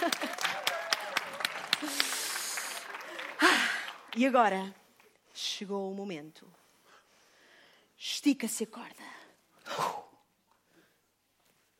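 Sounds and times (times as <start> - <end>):
audience applause: 0.0 - 4.7
speech: 4.2 - 4.8, 5.4 - 6.6, 8.0 - 9.9.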